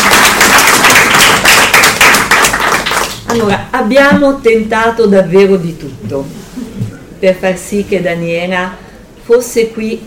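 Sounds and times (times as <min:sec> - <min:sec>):
applause: 0:00.0 - 0:03.4
speech: 0:03.3 - 0:10.0.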